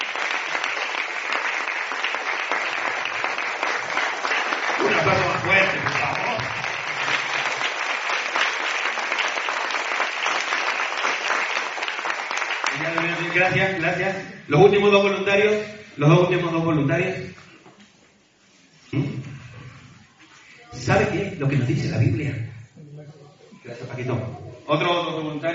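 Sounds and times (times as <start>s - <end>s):
audience applause: 0.0s - 13.6s
speech: 13.5s - 17.4s, 20.9s - 22.5s, 23.7s - 25.5s.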